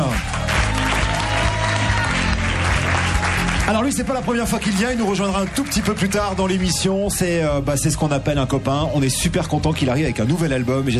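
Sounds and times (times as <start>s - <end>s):
studio audience applause: 0.0s - 7.2s
speech: 3.7s - 10.9s.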